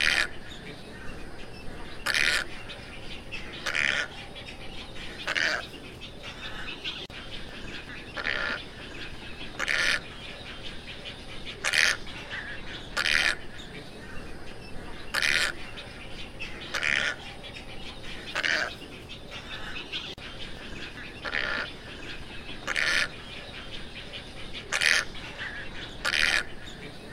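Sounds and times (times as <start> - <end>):
tricolored heron squawks: 0.0 - 1.0, 1.8 - 14.2, 14.8 - 27.1.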